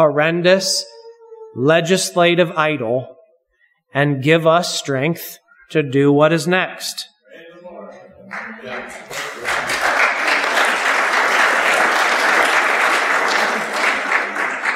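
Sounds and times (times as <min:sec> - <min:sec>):
speech: 0:00.0 - 0:00.9, 0:01.5 - 0:03.2, 0:03.9 - 0:07.1, 0:08.3 - 0:09.9
audience clapping in church: 0:08.3 - 0:14.7.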